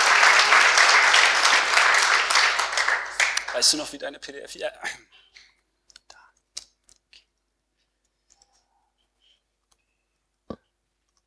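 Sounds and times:
audience applause: 0:00.0 - 0:04.1
speech: 0:03.6 - 0:05.5.

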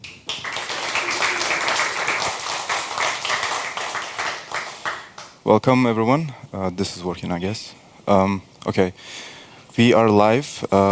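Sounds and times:
audience applause: 0:00.0 - 0:05.4
speech: 0:05.5 - 0:10.9.

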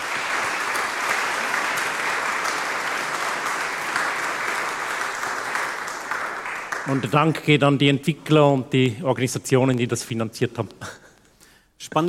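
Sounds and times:
audience applause: 0:00.0 - 0:07.4
speech: 0:06.9 - 0:11.0, 0:11.8 - 0:12.0.

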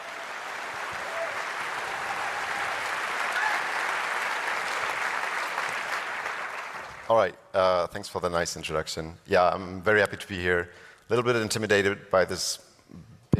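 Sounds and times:
audience applause: 0:00.0 - 0:07.1
speech: 0:07.1 - 0:13.3.

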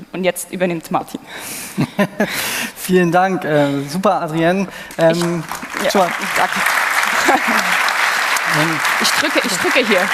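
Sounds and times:
speech: 0:00.2 - 0:07.8, 0:08.5 - 0:10.1
laughter: 0:01.4 - 0:02.8, 0:05.1 - 0:10.1
audience applause: 0:04.9 - 0:10.1.

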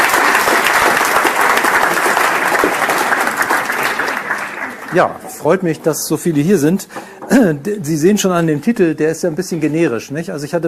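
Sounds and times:
audience applause: 0:00.0 - 0:05.3
speech: 0:04.9 - 0:10.6.

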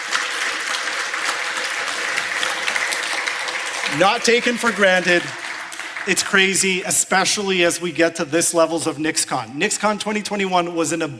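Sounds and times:
round of applause: 0:00.0 - 0:06.9
speech: 0:03.9 - 0:05.4, 0:06.0 - 0:11.1.

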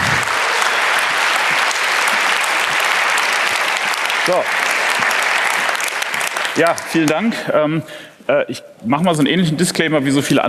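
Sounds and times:
applause: 0:00.0 - 0:07.4
speech: 0:04.3 - 0:04.6, 0:06.6 - 0:10.4.

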